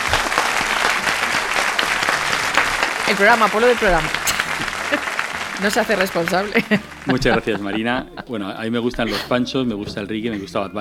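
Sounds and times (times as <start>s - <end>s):
studio audience applause at a Spanish-language show: 0.0s - 8.4s
laughter: 0.0s - 10.8s
speech: 3.1s - 10.8s.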